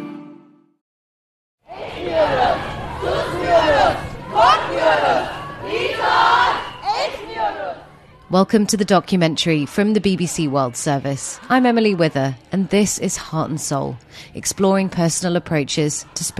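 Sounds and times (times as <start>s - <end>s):
protest crowd in Turkey chanting and shouting: 1.7s - 16.3s
speech: 8.3s - 16.3s.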